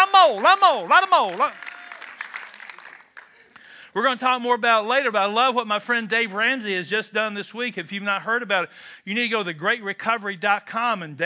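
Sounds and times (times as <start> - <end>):
audience clapping: 0.0 - 3.8
speech: 0.2 - 1.6, 4.0 - 11.2.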